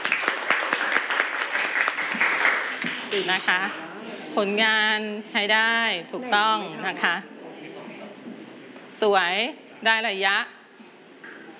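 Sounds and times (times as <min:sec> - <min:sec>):
class applause: 0:00.0 - 0:03.8
speech: 0:03.1 - 0:03.8, 0:04.4 - 0:07.3, 0:09.0 - 0:10.6.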